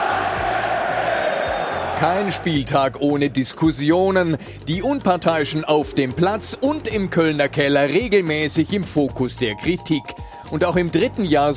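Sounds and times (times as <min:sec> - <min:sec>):
stadium crowd of football fans chanting angrily: 0:00.0 - 0:02.4
speech: 0:02.0 - 0:11.5.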